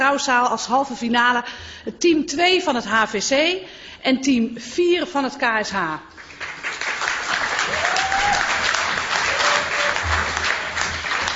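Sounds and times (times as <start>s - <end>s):
speech: 0.0s - 6.5s
audience applause: 6.2s - 11.3s.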